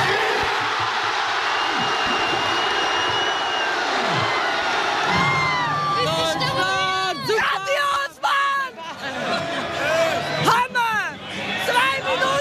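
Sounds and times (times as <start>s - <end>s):
football fans cheering at public viewing: 0.0s - 12.3s
high whistles: 1.5s - 4.4s
laughter: 8.8s - 10.3s.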